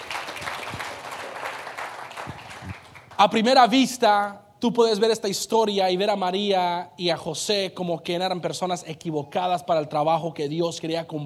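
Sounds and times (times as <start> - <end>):
audience applauding: 0.0 - 3.3
speech: 3.2 - 11.2.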